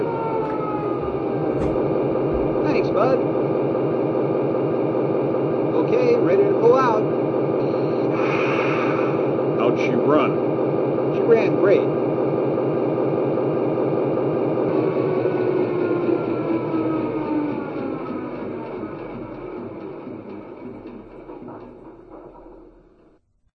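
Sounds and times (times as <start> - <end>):
EMD F3 diesel locomotive: 0.0 - 23.5.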